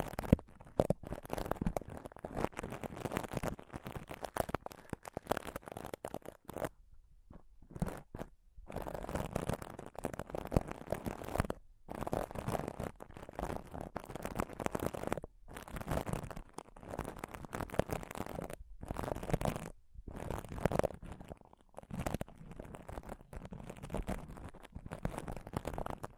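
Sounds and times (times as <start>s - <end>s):
scratching and touching on a microphone: 0.0s - 26.1s.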